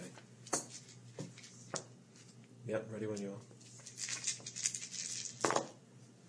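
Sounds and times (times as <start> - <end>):
speech: 2.7 - 3.6
dice being rolled: 3.8 - 5.7.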